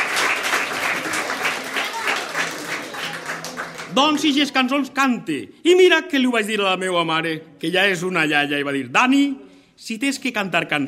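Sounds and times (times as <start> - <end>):
audience applause: 0.0 - 4.5
speech: 4.0 - 10.8.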